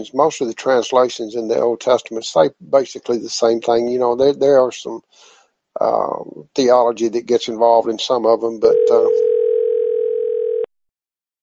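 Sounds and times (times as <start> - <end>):
speech: 0.0 - 9.3
telephone ringing with an electronic tone: 8.6 - 10.7.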